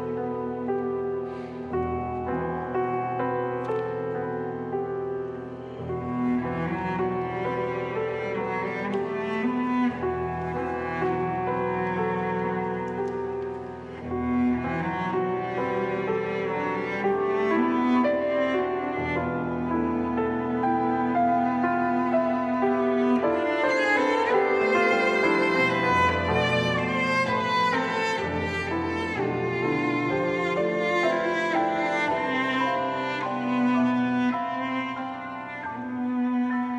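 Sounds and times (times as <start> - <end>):
cello: 0.0 - 36.7
piano: 0.0 - 36.7.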